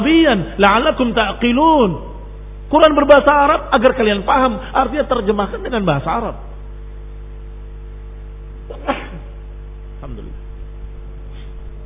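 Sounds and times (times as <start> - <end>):
speech: 0.0 - 2.1, 2.7 - 6.5
sneeze: 8.7 - 9.4.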